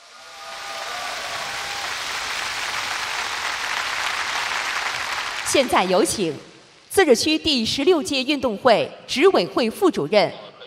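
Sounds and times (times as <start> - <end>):
warm applause from the audience: 0.0 - 5.7
speech: 5.5 - 10.4.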